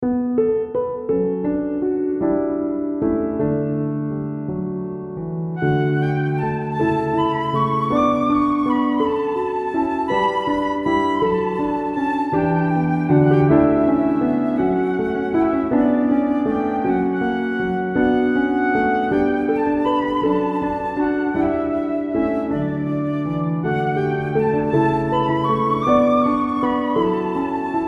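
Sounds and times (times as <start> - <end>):
instrumental music: 0.0 - 27.8.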